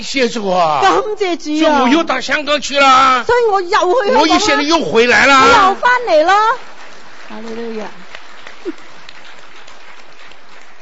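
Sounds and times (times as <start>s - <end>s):
speech: 0.0s - 6.7s, 7.3s - 8.0s
audience clapping: 4.5s - 10.7s.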